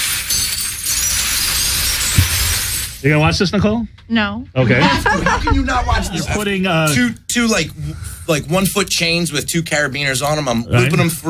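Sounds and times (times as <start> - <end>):
broken glass bottles poured from a bucket onto the ground: 0.0 - 3.1
speech: 3.0 - 11.2
laughter: 4.6 - 6.6.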